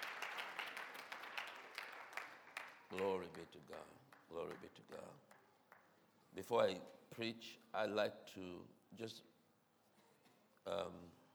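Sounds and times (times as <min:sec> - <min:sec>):
faint church congregation applause in praise: 0:00.0 - 0:04.7
speech: 0:02.9 - 0:05.4, 0:06.3 - 0:09.3, 0:10.6 - 0:11.2.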